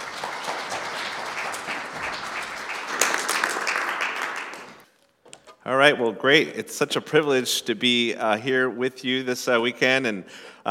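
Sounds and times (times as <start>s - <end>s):
round of applause: 0.0s - 4.9s
speech: 5.7s - 10.7s.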